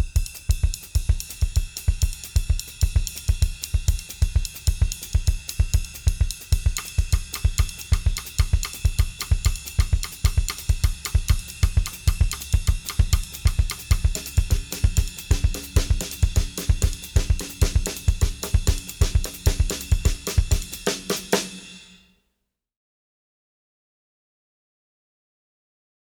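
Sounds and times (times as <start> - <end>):
samba drumming: 0.1 - 22.0
ride cymbal patterns: 5.0 - 22.0.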